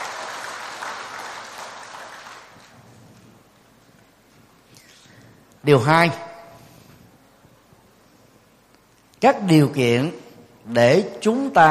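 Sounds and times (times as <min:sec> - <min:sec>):
loud applause: 0:00.0 - 0:02.8
speech: 0:05.6 - 0:06.3, 0:09.2 - 0:11.6.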